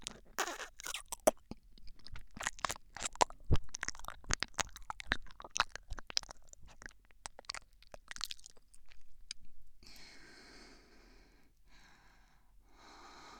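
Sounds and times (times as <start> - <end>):
left ear licking ASMR: 0.0 - 9.5.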